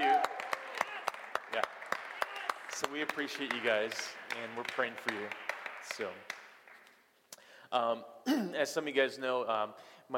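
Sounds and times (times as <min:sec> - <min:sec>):
audience clapping: 0:00.0 - 0:07.1
speech: 0:02.8 - 0:06.4, 0:07.7 - 0:10.1.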